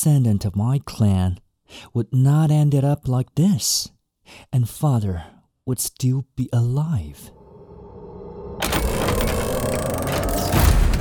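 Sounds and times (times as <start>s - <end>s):
speech: 0.0s - 7.4s
low hum: 7.3s - 10.9s.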